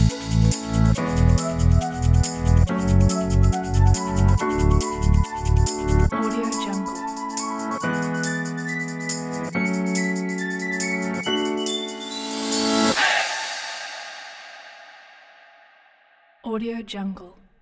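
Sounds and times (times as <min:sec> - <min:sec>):
uplifting motivational happy upbeat music: 0:00.0 - 0:13.3.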